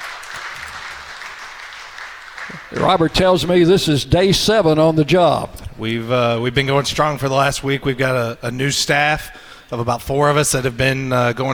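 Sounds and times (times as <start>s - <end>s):
audience clapping at a Blue Raider athletics event: 0.0s - 3.7s
speech: 2.5s - 11.5s.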